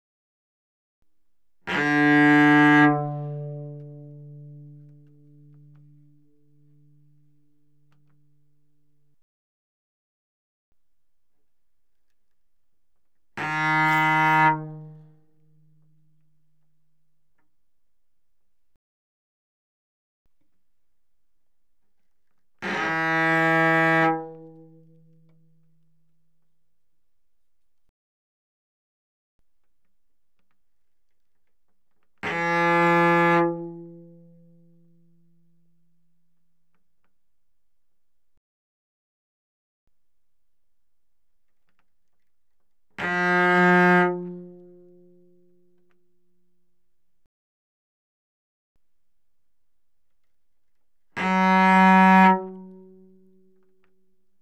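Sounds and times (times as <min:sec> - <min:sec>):
cello bowed fortissimo on the D string: 0:01.6 - 0:07.3, 0:13.0 - 0:16.2, 0:22.6 - 0:25.6, 0:31.4 - 0:35.6, 0:43.0 - 0:45.5, 0:51.2 - 0:53.2.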